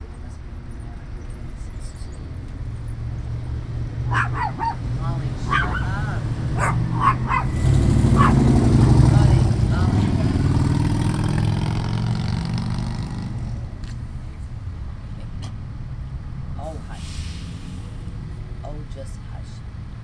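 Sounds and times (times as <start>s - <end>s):
loud vehicle in Berkeley: 0.0s - 20.0s
dogs barking in Berkeley: 4.0s - 9.2s.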